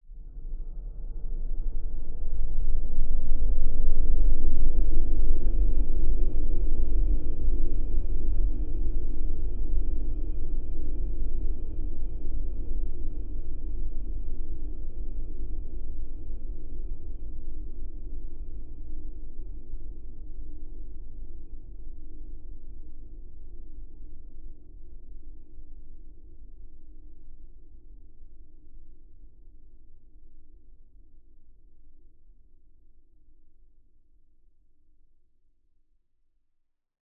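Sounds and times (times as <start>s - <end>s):
cinematic dark howling evil droning swell: 0.0s - 25.5s.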